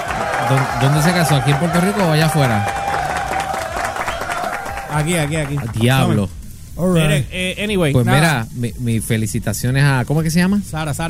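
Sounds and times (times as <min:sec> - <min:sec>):
applause and cheering sound effect: 0:00.0 - 0:06.2
speech: 0:00.5 - 0:02.8, 0:04.9 - 0:11.0.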